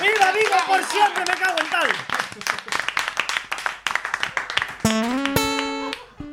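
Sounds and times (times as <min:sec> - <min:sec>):
audience applause: 0:00.0 - 0:06.2
speech: 0:00.7 - 0:02.0.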